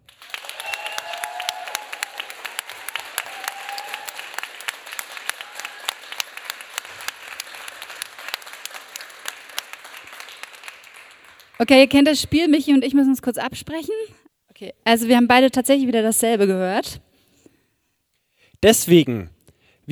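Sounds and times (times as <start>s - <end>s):
audience applause: 0.0s - 11.8s
speech: 11.6s - 17.1s, 18.6s - 19.8s.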